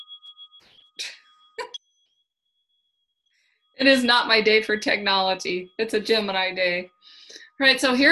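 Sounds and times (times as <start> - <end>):
bell ringing: 0.0 - 1.9, 3.7 - 8.1
speech: 1.0 - 1.2, 3.8 - 8.1.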